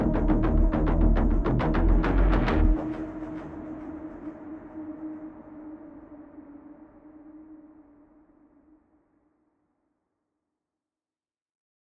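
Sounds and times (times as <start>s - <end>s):
ambient music: 0.0s - 8.7s.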